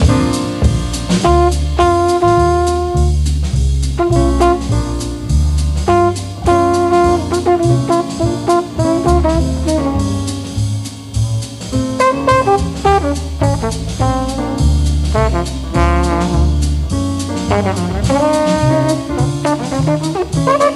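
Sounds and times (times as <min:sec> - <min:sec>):
flugelhorn blues chorus rhythm: 0:00.0 - 0:11.2, 0:11.8 - 0:20.7.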